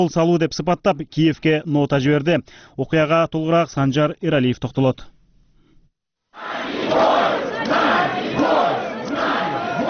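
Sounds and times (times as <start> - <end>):
speech: 0.0 - 5.1
protesters shouting outside the Russian embassy in Kyiv: 6.4 - 9.8.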